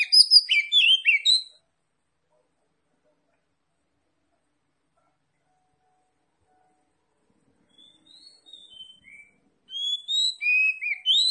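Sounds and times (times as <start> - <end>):
Oriental magpie-robin singing: 0.0 - 1.6, 7.7 - 11.2.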